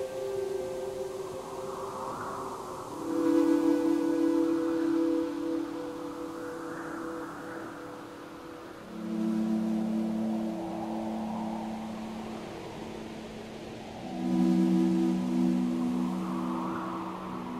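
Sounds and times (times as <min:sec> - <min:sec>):
ambient soundtrack music: 0:00.0 - 0:17.5.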